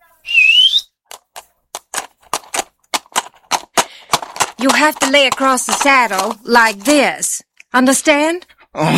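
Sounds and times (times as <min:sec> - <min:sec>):
whistle calling a horse: 0:00.2 - 0:01.0
speech: 0:04.6 - 0:08.9.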